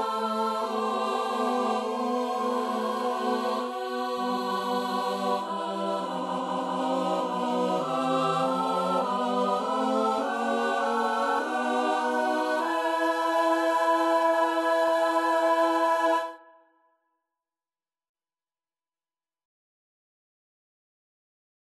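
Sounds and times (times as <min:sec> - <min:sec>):
choir singing: 0:00.0 - 0:16.6.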